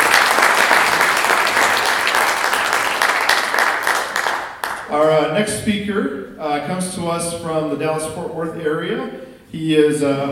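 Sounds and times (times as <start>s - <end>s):
audience applause: 0.0s - 4.9s
speech: 4.9s - 10.3s.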